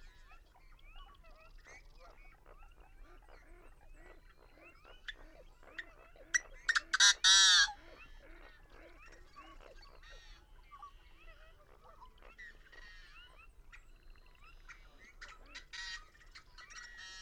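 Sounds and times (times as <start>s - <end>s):
busy chorus of nasal honking bird calls: 6.7s - 7.8s.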